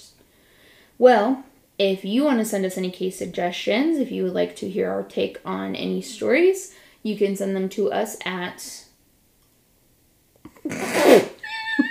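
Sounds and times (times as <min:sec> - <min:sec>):
speech: 0:01.0 - 0:08.8, 0:10.6 - 0:11.3
dog yawning with squeaky whine: 0:11.3 - 0:11.8.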